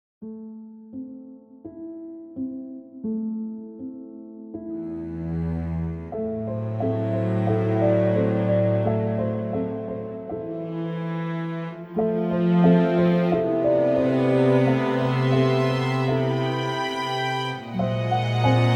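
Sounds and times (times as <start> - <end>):
strings: 4.8 - 18.7.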